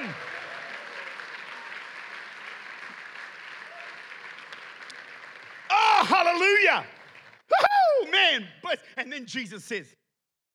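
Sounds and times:
audience clapping hands: 0.0 - 8.1
speech: 6.0 - 10.0.

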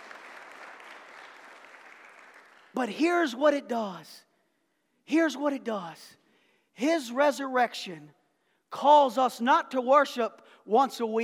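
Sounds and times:
audience clapping: 0.0 - 2.8
speech: 2.8 - 4.3, 5.1 - 6.2, 6.8 - 11.2.

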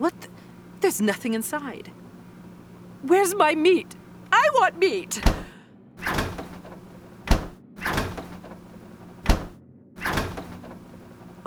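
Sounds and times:
fridge door opening and closing: 0.0 - 11.4
speech: 0.9 - 2.0, 3.0 - 5.4.

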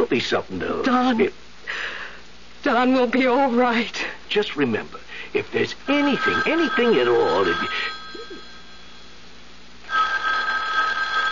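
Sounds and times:
speech: 0.0 - 2.0, 2.6 - 8.0
telephone ringing: 5.9 - 11.3.

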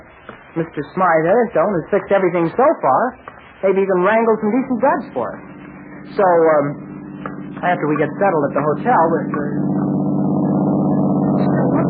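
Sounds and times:
speech: 0.6 - 9.8
car driving past: 4.8 - 11.8.

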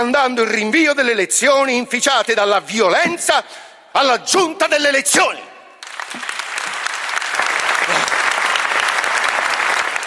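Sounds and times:
speech: 0.0 - 5.5
audience standing applause: 5.8 - 10.0.

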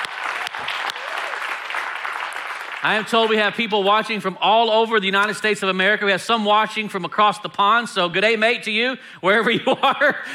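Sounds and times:
church congregation applauding during a service: 0.0 - 3.9
speech: 2.8 - 10.3
laughter: 9.4 - 10.3.

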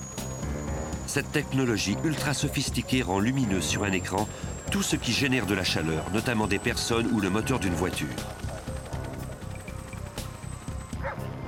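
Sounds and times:
speech: 1.1 - 8.4
dogs barking: 8.3 - 10.3, 11.0 - 11.3.

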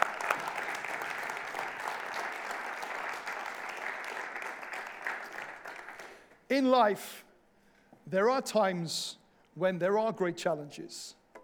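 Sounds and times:
audience clapping in welcome: 0.0 - 6.4
speech: 6.5 - 7.2, 8.1 - 11.2.

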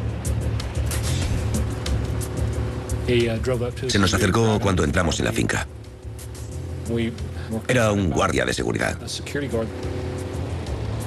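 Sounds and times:
car approaching: 0.0 - 11.0
speech: 3.1 - 5.8, 6.9 - 10.0.

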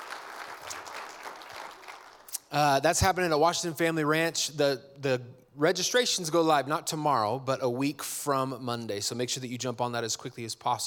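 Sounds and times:
audience clapping: 0.0 - 2.4
speech: 2.5 - 10.8.

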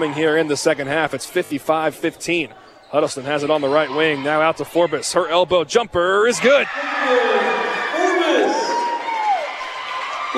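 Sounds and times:
speech: 0.0 - 7.4
gym crowd applauding and cheering: 6.7 - 10.3.

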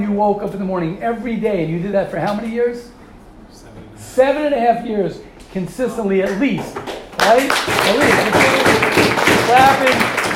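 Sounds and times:
speech: 0.2 - 8.6, 9.5 - 10.1
audience clapping: 6.3 - 10.3.

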